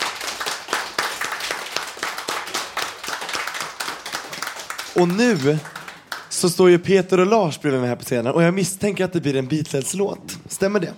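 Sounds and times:
audience applause for a poem: 0.0s - 6.5s
speech: 5.0s - 5.8s, 6.4s - 10.9s.

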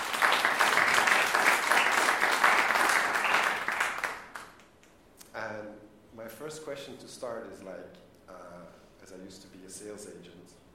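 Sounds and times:
audience applause: 0.0s - 4.6s
speech: 6.6s - 10.6s.

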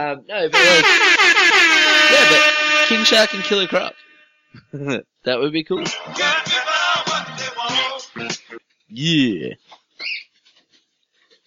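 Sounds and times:
speech: 0.0s - 6.7s, 8.2s - 10.2s
loud shrill bird squawk: 10.0s - 10.3s.

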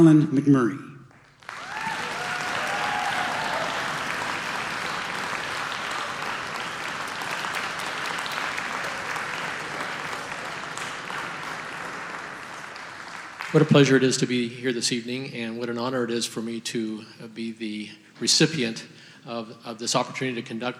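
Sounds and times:
speech: 0.0s - 0.9s, 13.5s - 20.7s
audience applause at a college wind ensemble concert: 1.1s - 14.2s.

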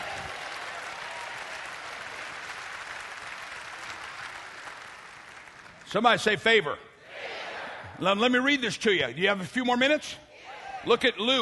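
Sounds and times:
audience clapping: 0.0s - 6.3s
speech: 5.9s - 6.9s, 8.0s - 10.2s, 10.8s - 11.4s.

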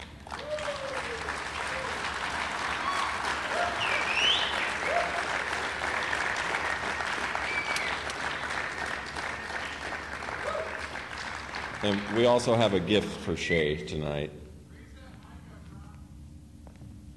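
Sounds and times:
audience applause welcoming the main speaker at an evening gathering: 0.0s - 12.9s
speech: 11.8s - 14.4s.

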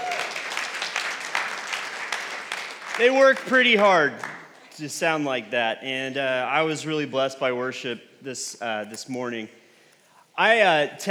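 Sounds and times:
crowd applauding: 0.0s - 4.8s
speech: 3.0s - 9.6s, 10.4s - 11.0s.

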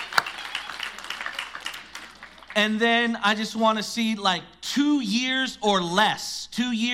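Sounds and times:
audience applause: 0.0s - 2.8s
speech: 2.6s - 6.9s.

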